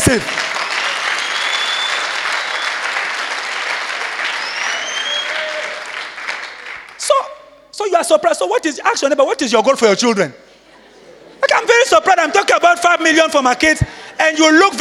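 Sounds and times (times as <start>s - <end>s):
audience clapping: 0.0s - 7.1s
speech: 0.1s - 0.4s, 8.0s - 10.4s, 11.9s - 14.7s
laughter: 10.4s - 13.4s.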